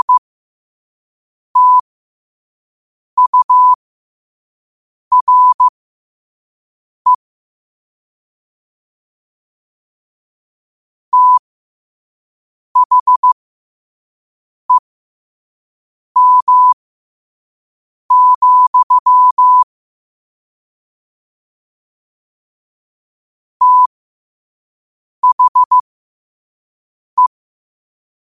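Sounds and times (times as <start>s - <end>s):
morse code at 5 wpm: 0.0s - 0.2s, 1.6s - 1.8s, 3.2s - 3.8s, 5.1s - 5.7s, 11.2s - 11.4s, 12.8s - 13.4s, 16.2s - 16.8s, 18.1s - 19.6s, 23.6s - 23.9s, 25.2s - 25.8s.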